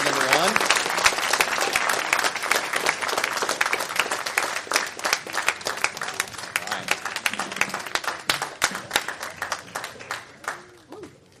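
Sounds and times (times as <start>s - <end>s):
audience applause: 0.0s - 11.2s.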